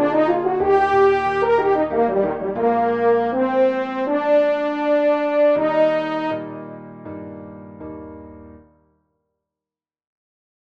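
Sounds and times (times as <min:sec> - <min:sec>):
E-flat French horn solo: 0:00.0 - 0:06.7
piano: 0:00.0 - 0:09.1.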